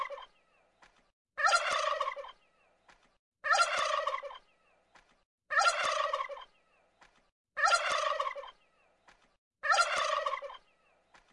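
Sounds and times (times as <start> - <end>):
wild turkey gobbling: 0.0 - 0.3, 1.4 - 2.4, 3.4 - 4.5, 5.5 - 6.6, 7.6 - 8.6, 9.6 - 10.7.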